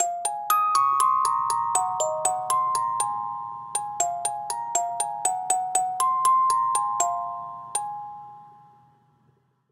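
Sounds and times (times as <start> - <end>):
music box: 0.0 - 9.3.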